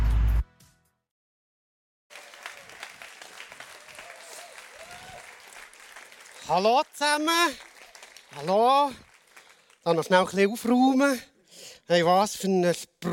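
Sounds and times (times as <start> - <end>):
audience applause: 2.1 - 10.4
speech: 6.5 - 7.7, 8.3 - 9.0, 9.8 - 13.1.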